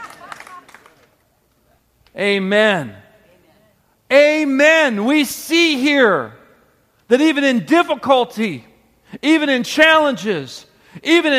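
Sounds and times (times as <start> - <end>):
audience clapping: 0.0 - 1.3
speech: 2.1 - 3.0, 4.1 - 6.4, 7.1 - 11.3.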